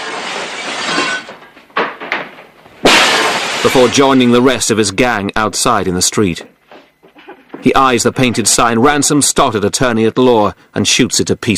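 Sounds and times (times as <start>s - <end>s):
chair smashing through office window: 0.0s - 4.5s
speech: 3.6s - 6.6s, 7.6s - 11.5s.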